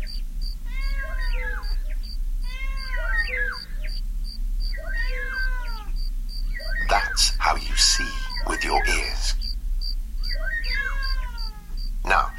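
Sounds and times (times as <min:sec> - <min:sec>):
distant cuckoo calling: 0:00.0 - 0:04.0, 0:04.6 - 0:09.6, 0:10.2 - 0:12.3
cricket chirping: 0:00.0 - 0:12.3
cat meowing: 0:00.6 - 0:03.9, 0:04.8 - 0:05.9, 0:06.6 - 0:09.4, 0:10.2 - 0:12.3
speech: 0:07.4 - 0:09.4.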